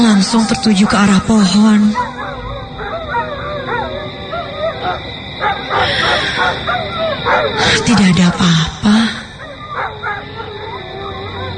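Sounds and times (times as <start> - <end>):
speech: 0.2 - 2.1, 7.4 - 9.1
dog barking on the side of a cliff: 2.0 - 7.6.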